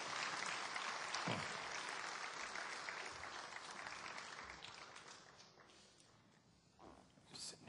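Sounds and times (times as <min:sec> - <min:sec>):
audience applause: 0:00.0 - 0:05.8.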